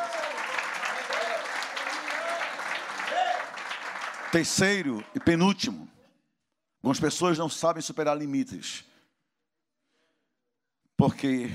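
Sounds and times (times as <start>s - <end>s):
audience applauding: 0.0s - 5.5s
speech: 4.3s - 5.9s, 6.8s - 8.9s, 11.0s - 11.5s.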